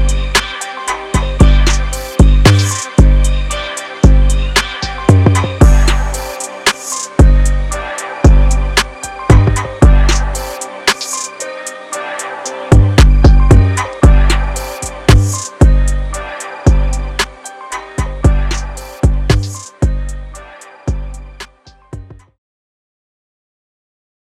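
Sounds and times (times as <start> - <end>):
drum kit: 0.0 - 3.3, 4.0 - 7.6, 8.3 - 11.4, 12.7 - 16.0, 18.0 - 20.0.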